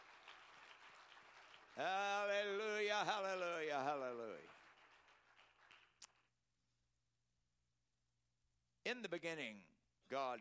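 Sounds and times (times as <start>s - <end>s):
audience clapping: 0.0s - 6.3s
speech: 1.8s - 4.6s, 8.9s - 10.3s.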